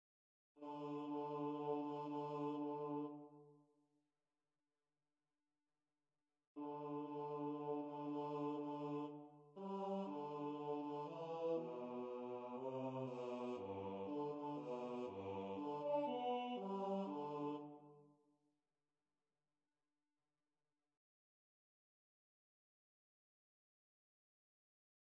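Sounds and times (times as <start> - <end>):
bass choir singing: 0.6 - 3.2, 6.6 - 17.8.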